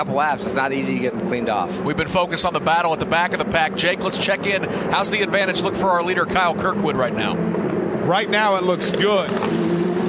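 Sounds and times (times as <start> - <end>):
speech: 0.0 - 9.7
Indy Lights race car engine passing: 0.0 - 10.0.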